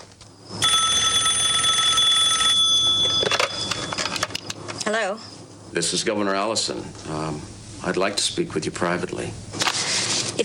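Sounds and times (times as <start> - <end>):
telephone ringing: 0.5 - 4.6
speech: 4.9 - 9.6.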